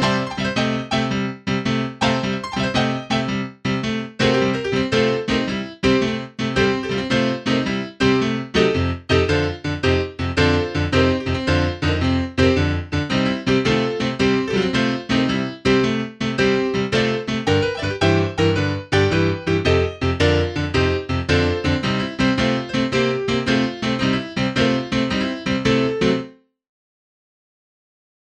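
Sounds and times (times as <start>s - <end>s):
dry piano: 0.0s - 26.4s.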